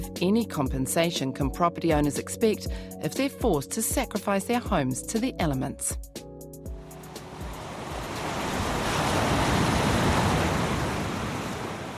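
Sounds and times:
speech: 0:00.2 - 0:06.2
ocean waves crashing onto a shoreline: 0:06.8 - 0:11.9.

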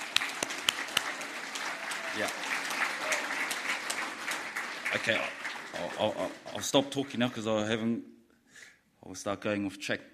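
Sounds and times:
round of applause: 0:00.0 - 0:07.5
speech: 0:02.2 - 0:02.4, 0:04.9 - 0:08.1, 0:09.0 - 0:10.1.

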